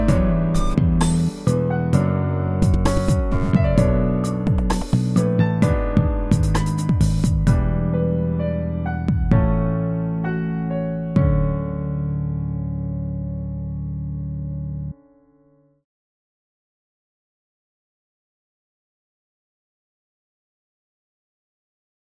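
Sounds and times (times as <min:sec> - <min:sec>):
bass: 0:00.0 - 0:15.0.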